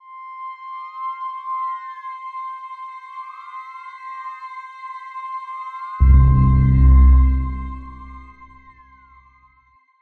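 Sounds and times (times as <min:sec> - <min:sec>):
transition end sound: 0:06.0 - 0:08.7.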